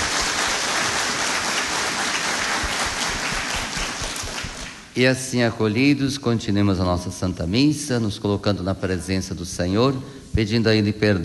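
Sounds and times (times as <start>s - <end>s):
congregation at Mass applauding seminarians: 0.0s - 5.0s
speech: 5.0s - 11.2s.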